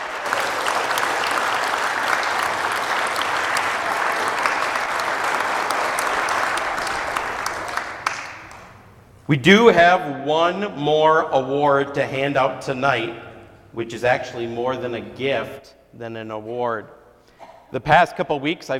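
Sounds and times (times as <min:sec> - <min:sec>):
applause: 0:00.0 - 0:08.8
speech: 0:09.3 - 0:17.0, 0:17.7 - 0:18.7.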